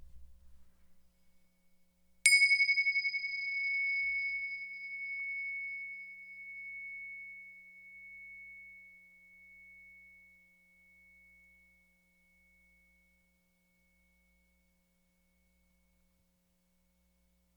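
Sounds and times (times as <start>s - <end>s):
meditation bell ringing: 2.3s - 14.8s.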